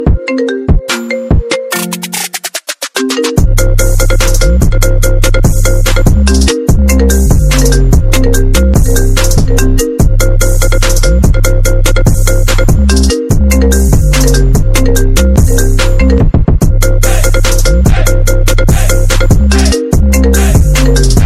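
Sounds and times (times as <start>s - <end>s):
iPhone ringtone: 0.0s - 21.2s.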